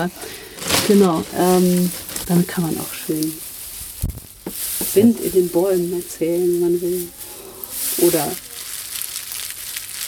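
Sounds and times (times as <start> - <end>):
speech: 0.0 - 3.4, 5.0 - 7.2, 8.0 - 8.5
foley crinkling imitating eggs frying in pan: 0.0 - 10.0.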